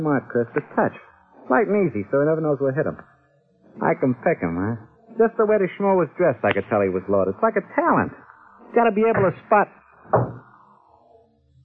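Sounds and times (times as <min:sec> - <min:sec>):
speech: 0:00.0 - 0:03.1, 0:03.8 - 0:10.4
knock on a wooden door: 0:10.1 - 0:10.4.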